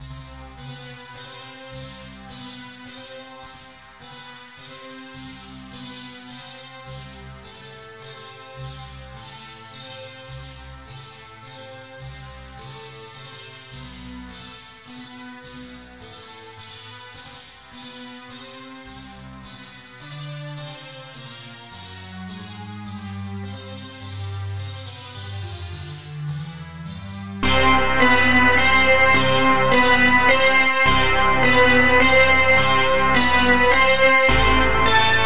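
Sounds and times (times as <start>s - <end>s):
waltz music: 27.4s - 35.2s.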